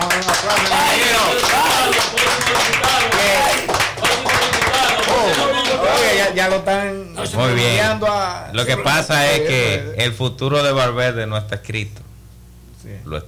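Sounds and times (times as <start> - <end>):
audience applause: 0.0 - 6.1
speech: 6.4 - 12.1, 12.8 - 13.2.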